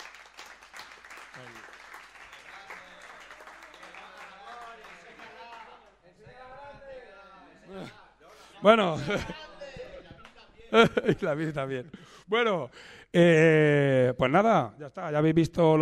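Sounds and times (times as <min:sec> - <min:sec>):
crowd applause: 0:00.0 - 0:06.0
speech: 0:08.6 - 0:09.4, 0:10.7 - 0:15.8
laughter: 0:08.6 - 0:12.0.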